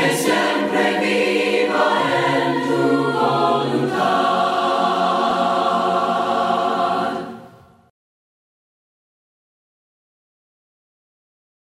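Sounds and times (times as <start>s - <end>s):
voices singing hymns a cappella: 0.0s - 7.6s.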